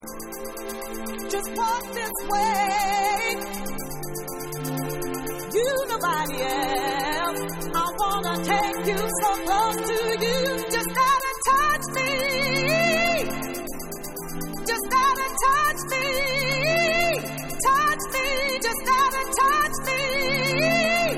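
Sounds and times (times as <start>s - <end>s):
a cappella singing: 1.4s - 3.5s, 5.5s - 13.6s, 14.7s - 21.1s.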